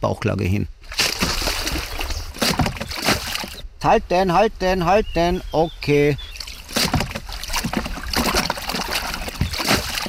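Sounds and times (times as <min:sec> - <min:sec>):
speech: 0:00.0 - 0:01.0, 0:03.8 - 0:06.3
water splashing as a homemade raft is pushed into a river: 0:00.8 - 0:03.7, 0:06.2 - 0:10.0.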